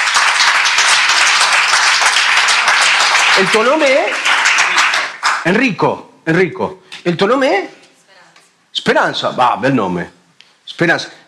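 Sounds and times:
crowd applauding: 0.0s - 5.6s
speech: 3.4s - 4.4s, 5.4s - 7.8s, 8.8s - 11.2s.

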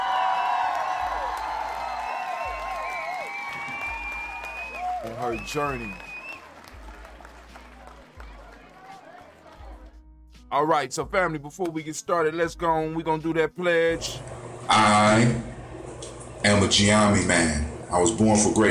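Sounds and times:
whoops and cheers: 0.0s - 9.8s
audience clapping: 0.0s - 10.0s
speech: 5.0s - 6.1s, 10.5s - 15.4s, 16.4s - 18.7s.

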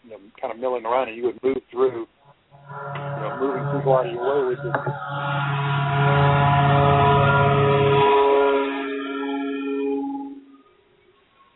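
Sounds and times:
speech: 0.2s - 7.0s
city mosquito spraying truck droning past: 2.6s - 10.6s.

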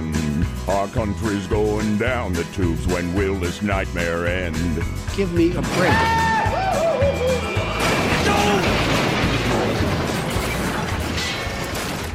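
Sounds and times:
speech: 0.7s - 6.3s
train wreck crash sound effect: 5.6s - 12.1s.

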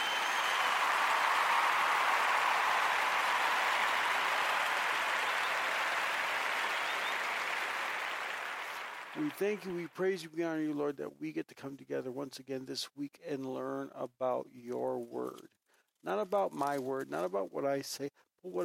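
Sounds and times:
audience clapping: 0.0s - 10.0s
speech: 9.2s - 18.6s.

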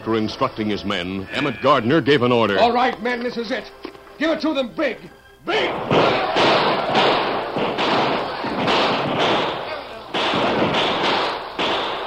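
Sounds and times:
speech: 0.0s - 6.3s
outburst of gunshots and continuing gunfire: 5.6s - 12.0s.

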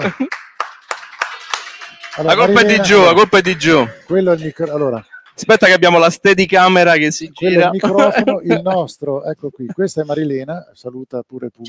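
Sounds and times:
laughter: 0.0s - 0.4s, 7.7s - 8.8s
speech: 0.0s - 0.4s, 2.2s - 11.6s
audience clapping: 0.0s - 5.9s.

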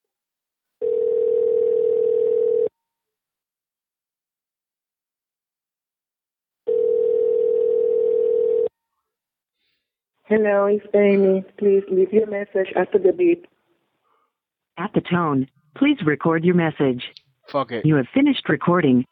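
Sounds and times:
telephone ringing tone while calling: 0.8s - 2.8s, 6.7s - 8.8s
speech: 10.3s - 13.5s, 14.8s - 19.0s.

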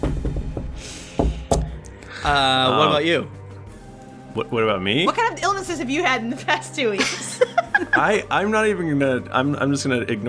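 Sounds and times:
sharp knocks on wood: 0.0s - 1.8s
speech: 2.2s - 3.4s, 4.4s - 10.2s
laughter: 7.0s - 8.3s.

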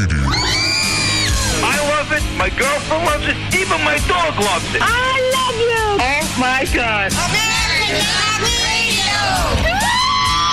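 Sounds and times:
party crowd cheering and whooping: 0.2s - 1.7s, 9.2s - 10.5s
overlapping high yells and sliding shouts: 0.3s - 1.8s, 7.2s - 10.5s
speech: 2.5s - 10.0s.

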